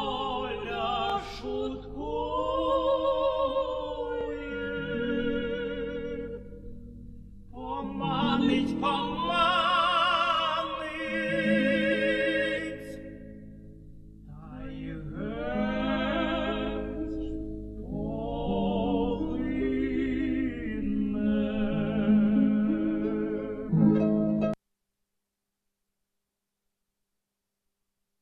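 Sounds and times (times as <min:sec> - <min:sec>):
Ukrainian tenor singing an art song: 0:00.0 - 0:06.6, 0:07.5 - 0:13.3, 0:14.2 - 0:24.0.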